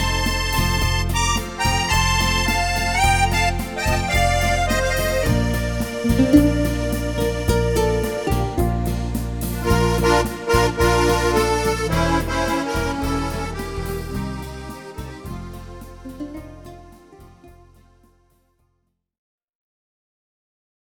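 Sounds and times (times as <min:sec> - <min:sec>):
accordion playing: 0:00.0 - 0:17.8.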